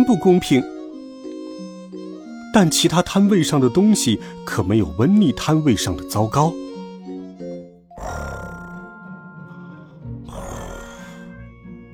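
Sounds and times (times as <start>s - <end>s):
speech: 0.1s - 0.7s, 2.6s - 6.6s
snoring: 8.0s - 9.0s, 10.3s - 11.4s.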